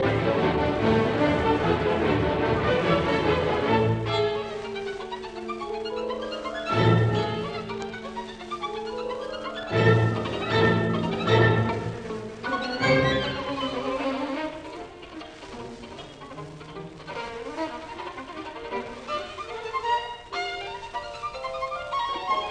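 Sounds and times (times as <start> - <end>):
fast violin concerto finale in D major: 0.0 - 22.5.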